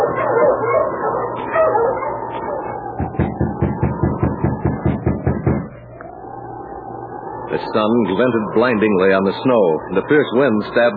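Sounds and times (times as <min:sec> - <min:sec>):
sled dog team barking and yipping: 0:00.0 - 0:04.9
speech: 0:07.6 - 0:10.9.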